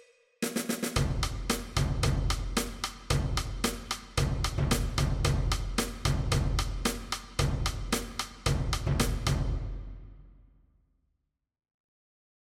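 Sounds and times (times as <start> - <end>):
percussion: 0.0 - 9.7.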